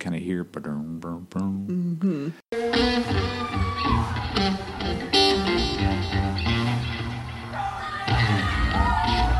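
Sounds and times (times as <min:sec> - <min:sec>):
speech: 0:00.0 - 0:02.9
loud dense live band music: 0:02.5 - 0:09.3
live concert crowd yelling and whooping: 0:02.7 - 0:05.2, 0:07.5 - 0:09.3.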